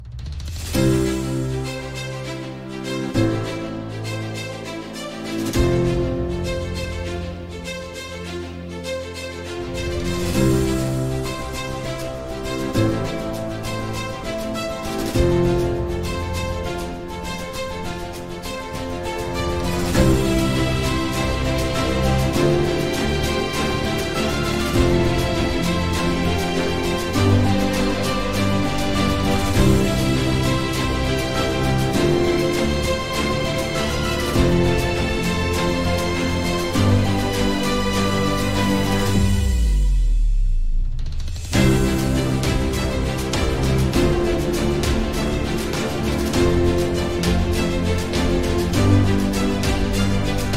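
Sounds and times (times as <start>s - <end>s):
inspiring opening ceremony background music: 0.0s - 50.5s.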